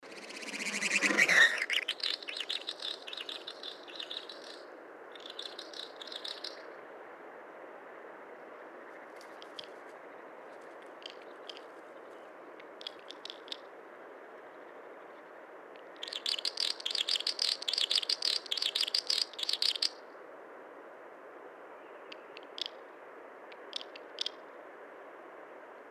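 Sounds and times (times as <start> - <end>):
snipe calls: 0.0 - 6.6, 12.8 - 13.7, 16.0 - 20.0, 23.6 - 24.4.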